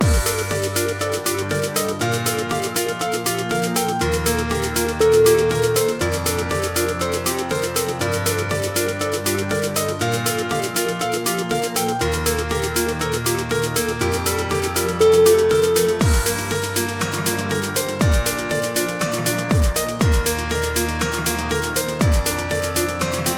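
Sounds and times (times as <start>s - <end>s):
dubstep music: 0.0s - 23.3s.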